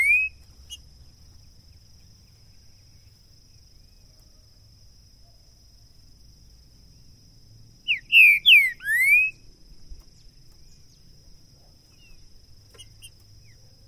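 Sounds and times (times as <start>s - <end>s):
green-winged saltator song of rich downslurred whistles: 0.0s - 0.8s, 7.8s - 9.4s.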